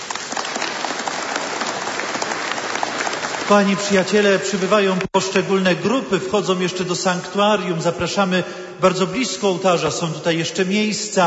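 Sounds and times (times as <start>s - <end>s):
applause: 0.0s - 5.2s
speech: 3.5s - 11.2s.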